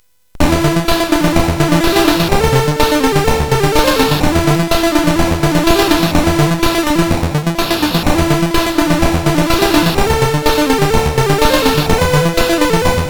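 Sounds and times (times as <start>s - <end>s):
synth sample on CSG8580R5 chip: 0.4s - 13.0s.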